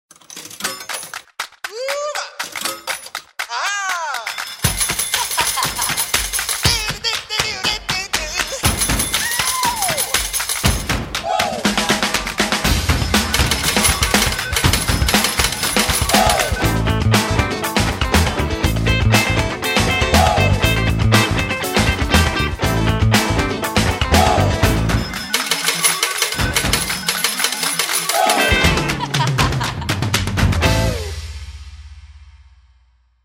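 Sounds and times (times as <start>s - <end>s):
banda music: 3.4s - 31.5s
laughter: 5.0s - 8.7s, 28.0s - 30.1s.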